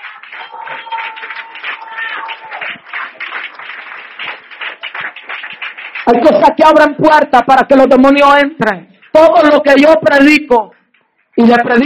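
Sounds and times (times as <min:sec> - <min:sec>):
church congregation clapping: 0:00.0 - 0:07.2
speech: 0:00.3 - 0:04.4, 0:06.1 - 0:10.8, 0:11.4 - 0:11.8.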